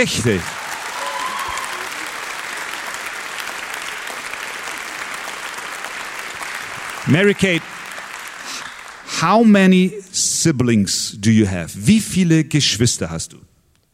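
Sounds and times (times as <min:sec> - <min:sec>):
speech: 0:00.0 - 0:00.6, 0:07.1 - 0:07.7, 0:09.2 - 0:13.5
warm applause from audience: 0:00.0 - 0:09.9.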